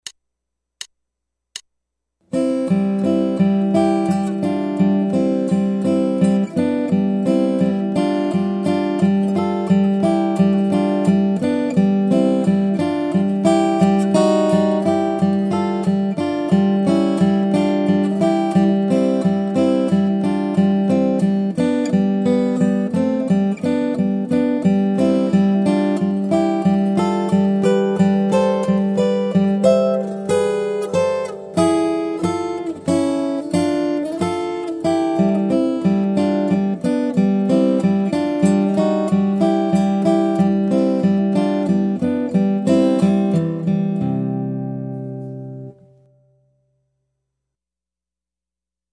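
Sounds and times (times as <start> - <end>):
guitar: 2.2 - 47.2.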